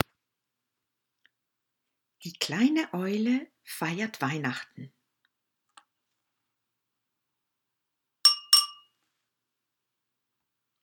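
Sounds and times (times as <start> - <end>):
speech: 2.2 - 5.0
small bell ringing: 8.3 - 8.9.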